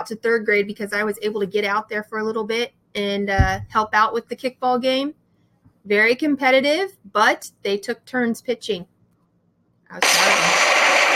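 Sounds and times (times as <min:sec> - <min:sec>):
speech: 0:00.0 - 0:05.2, 0:05.8 - 0:08.9, 0:09.9 - 0:10.6
explosion sound effect: 0:10.0 - 0:11.1.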